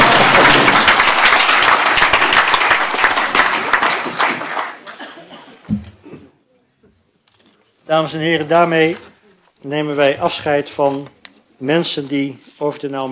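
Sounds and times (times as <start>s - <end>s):
extended applause: 0.0s - 5.0s
speech: 7.9s - 13.1s.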